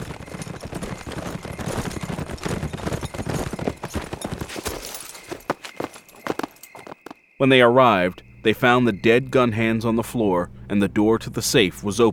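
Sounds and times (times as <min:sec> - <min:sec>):
several horses riding at a brisk pace, hooves clip-clopping: 0:00.0 - 0:07.2
speech: 0:07.4 - 0:12.1.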